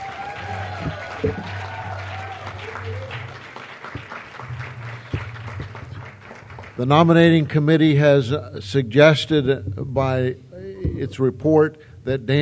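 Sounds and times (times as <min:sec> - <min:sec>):
audience applause: 0:00.0 - 0:07.5
speech: 0:00.8 - 0:01.6, 0:06.8 - 0:10.4, 0:11.0 - 0:12.4.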